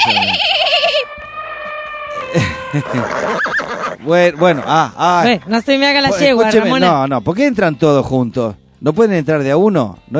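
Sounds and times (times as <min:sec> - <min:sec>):
donkey braying sound effect played on the radio: 0:00.0 - 0:07.0
speech: 0:02.3 - 0:03.4, 0:04.0 - 0:10.1.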